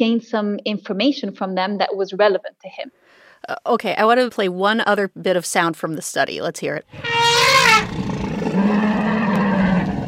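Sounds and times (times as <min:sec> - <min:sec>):
speech: 0:00.0 - 0:08.0
elephant trumpet-like blast: 0:06.9 - 0:10.0
elephant deep rumbling roar: 0:07.0 - 0:10.0.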